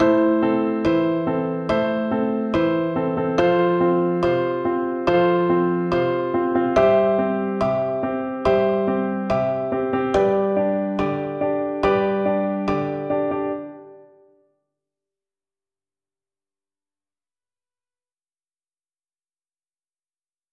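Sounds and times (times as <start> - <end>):
chords: 0.0 - 14.4.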